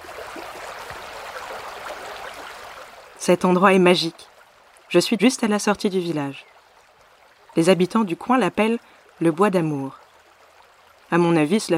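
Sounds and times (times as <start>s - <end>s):
stream flowing through the village of Pont-Aven: 0.0s - 11.7s
speech: 3.2s - 4.3s, 4.9s - 6.5s, 7.6s - 10.0s, 11.1s - 11.7s.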